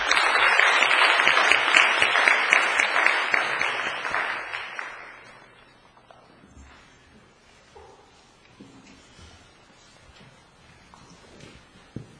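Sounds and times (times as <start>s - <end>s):
applause: 0.0s - 5.7s.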